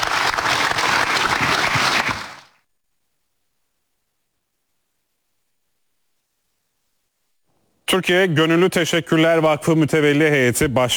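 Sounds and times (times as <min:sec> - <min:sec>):
enthusiastic audience applause: 0:00.0 - 0:02.5
speech: 0:07.9 - 0:10.9.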